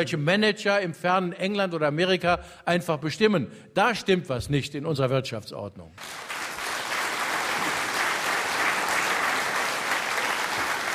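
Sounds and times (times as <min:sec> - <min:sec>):
speech: 0:00.0 - 0:06.3
audience applause: 0:06.0 - 0:10.9.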